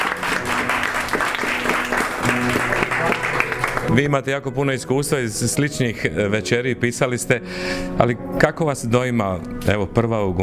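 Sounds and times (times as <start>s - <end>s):
audience applause greeting a veteran newspaper correspondent: 0.0s - 4.1s
speech: 4.0s - 10.4s.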